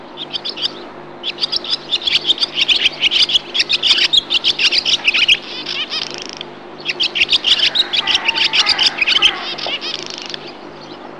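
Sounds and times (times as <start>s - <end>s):
barn swallow singing: 0.1s - 11.0s.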